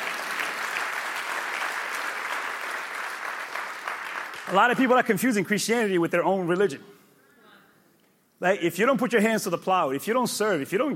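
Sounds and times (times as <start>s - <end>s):
crowd applauding: 0.0s - 5.3s
speech: 4.5s - 7.0s, 8.4s - 10.9s.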